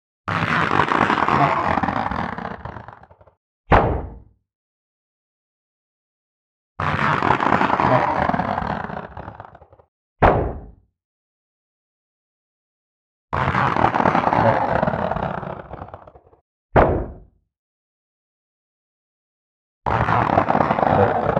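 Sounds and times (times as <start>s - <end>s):
cartoon rubber catapult: 0.3s - 4.3s, 6.8s - 10.8s, 13.4s - 17.3s, 19.9s - 21.3s.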